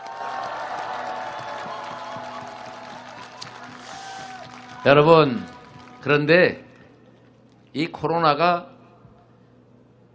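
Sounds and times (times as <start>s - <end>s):
audience applause: 0.0s - 7.0s
speech: 4.8s - 6.6s, 7.7s - 8.7s.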